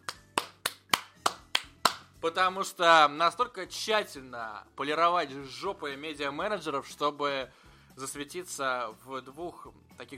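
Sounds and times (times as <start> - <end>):
clapping: 0.0 - 2.0
speech: 2.2 - 10.1.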